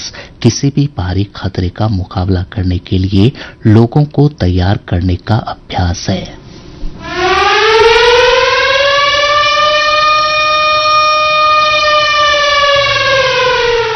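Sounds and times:
speech: 0.4s - 6.4s
civil defense air raid siren wailing: 6.9s - 13.9s.

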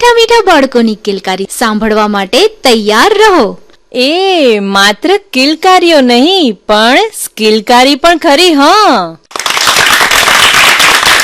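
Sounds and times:
speech: 0.0s - 9.3s
thunderous clapping for a children's performance programme: 9.3s - 11.2s.

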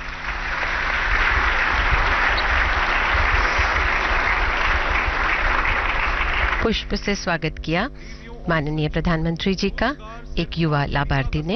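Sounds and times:
loud applause: 0.0s - 6.7s
speech: 6.6s - 11.5s.

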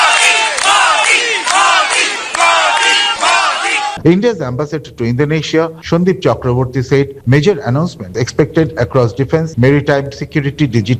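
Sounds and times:
Indian diaspora crowd cheering and chanting to welcome Prime Minister Modi in Jakarta: 0.0s - 4.0s
speech: 4.0s - 10.9s.

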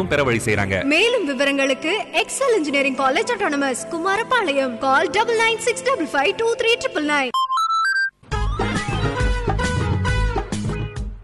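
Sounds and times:
music: 0.0s - 7.3s, 8.2s - 11.2s
speech: 0.0s - 7.4s
phone message notification tone: 7.4s - 9.2s.

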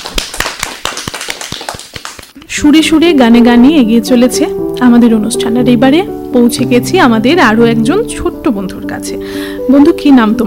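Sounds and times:
audience clapping for a child singer: 0.0s - 2.4s
speech: 2.5s - 10.4s.

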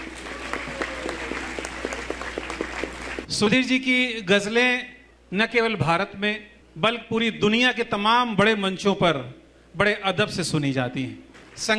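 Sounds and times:
loud audience applause: 0.0s - 3.3s
speech: 3.3s - 11.7s.

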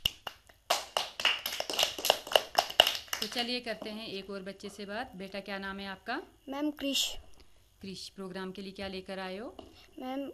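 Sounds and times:
audience clapping: 0.0s - 3.6s
speech: 3.2s - 10.3s.

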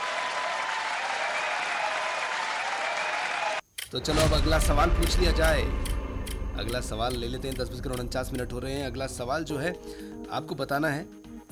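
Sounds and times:
crowd applause: 0.0s - 3.6s
speech: 3.9s - 6.0s, 6.6s - 11.2s.

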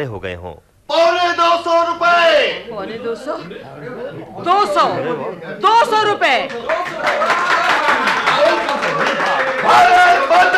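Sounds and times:
speech: 0.0s - 7.5s, 9.0s - 10.5s
crowd clapping all around: 6.2s - 10.5s.

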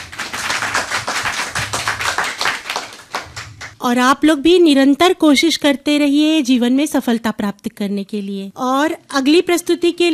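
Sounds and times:
children applauding: 0.0s - 3.7s
speech: 3.8s - 10.1s.

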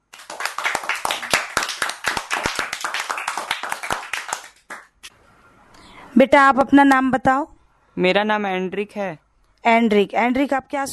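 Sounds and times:
children clapping: 0.0s - 5.0s
speech: 6.2s - 10.9s.

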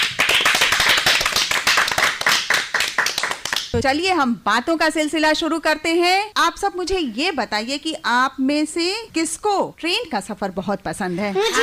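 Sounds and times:
children clapping loudly: 0.0s - 3.8s
speech: 3.8s - 11.6s.

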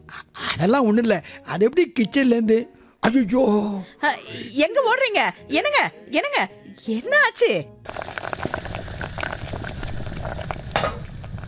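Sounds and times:
speech: 0.6s - 8.7s
cabbage curry sizzling and bubbling in a pan on the stove: 7.9s - 11.4s.

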